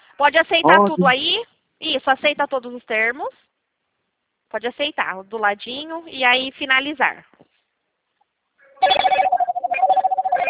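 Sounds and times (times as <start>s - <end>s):
speech: 0.2s - 3.5s, 4.5s - 7.4s
telephone ringing: 8.8s - 10.4s.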